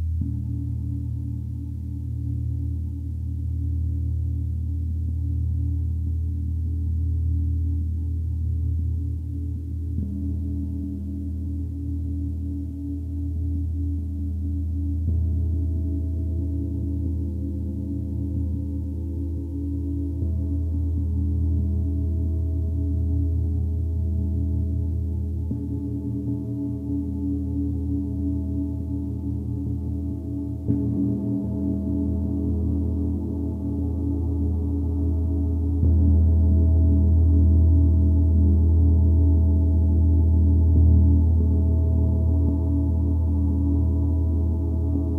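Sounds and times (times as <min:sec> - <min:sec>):
gong: 0:00.2 - 0:45.1.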